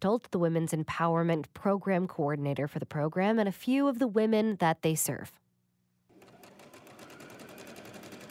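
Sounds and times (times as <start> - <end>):
speech: 0.0 - 5.4
sewing machines whirring at a refugee women's sewing class in Phoenix: 6.1 - 8.2.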